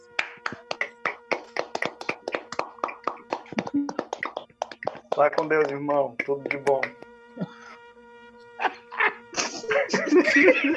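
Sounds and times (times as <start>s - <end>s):
round of applause: 0.2s - 5.8s
speech: 5.2s - 7.5s, 10.1s - 10.7s
laughter: 8.6s - 10.7s.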